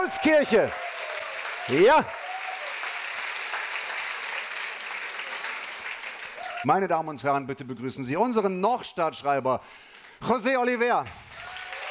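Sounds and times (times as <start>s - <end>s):
speech: 0.0s - 0.9s, 1.6s - 2.2s, 6.6s - 11.4s
audience cheering and applause: 0.0s - 6.9s, 11.2s - 11.8s.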